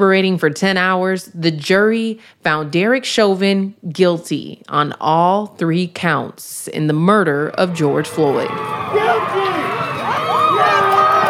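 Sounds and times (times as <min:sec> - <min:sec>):
speech: 0:00.0 - 0:09.6
crowd cheering after guilty verdict: 0:07.6 - 0:11.2.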